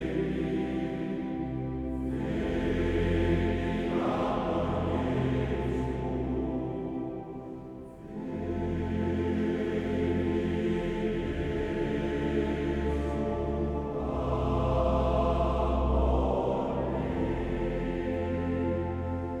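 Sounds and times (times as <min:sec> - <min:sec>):
male choir singing: 0:00.0 - 0:19.3.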